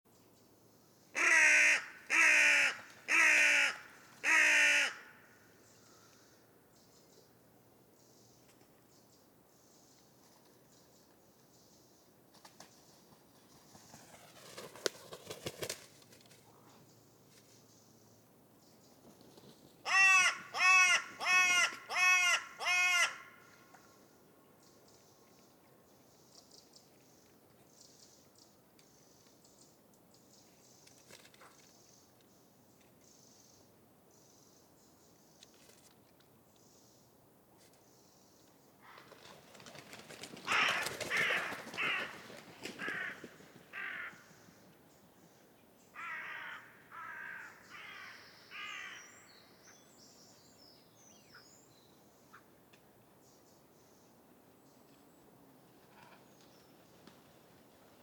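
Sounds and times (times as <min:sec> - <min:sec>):
Corvus corone calling: 0:01.2 - 0:06.1, 0:19.9 - 0:23.7, 0:40.4 - 0:44.5, 0:46.0 - 0:49.3.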